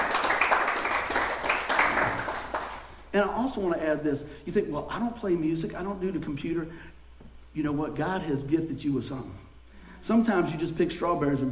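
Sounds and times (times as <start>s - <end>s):
large group clapping: 0.0s - 3.0s
speech: 3.1s - 6.9s, 7.6s - 9.4s, 10.0s - 11.5s.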